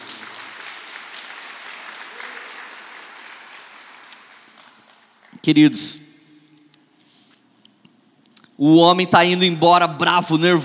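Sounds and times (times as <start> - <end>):
audience applauding: 0.0 - 5.5
speech: 5.4 - 6.1, 8.6 - 10.6.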